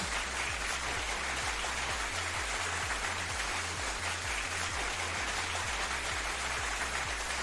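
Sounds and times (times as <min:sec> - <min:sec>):
applause: 0:00.0 - 0:07.4.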